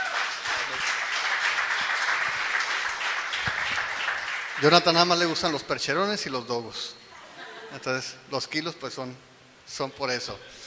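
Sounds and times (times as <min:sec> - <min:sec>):
audience applause: 0:00.0 - 0:05.4
speech: 0:04.6 - 0:07.0, 0:07.7 - 0:10.6.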